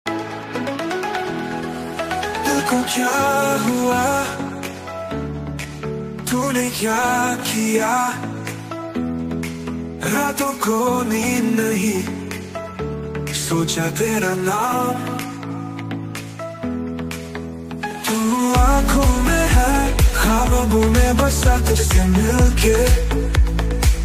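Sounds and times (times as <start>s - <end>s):
Hindi love song ringtone: 0.1s - 24.0s.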